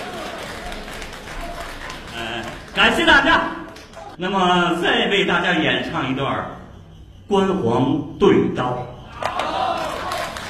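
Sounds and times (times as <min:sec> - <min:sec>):
Beijing opera and folk-performance audience clapping: 0:00.0 - 0:04.2, 0:09.2 - 0:10.4
speech: 0:02.8 - 0:03.6, 0:04.2 - 0:06.6, 0:07.3 - 0:08.9.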